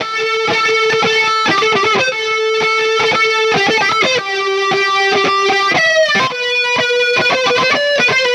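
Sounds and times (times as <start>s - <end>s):
lead guitar melody: 0.0s - 8.3s.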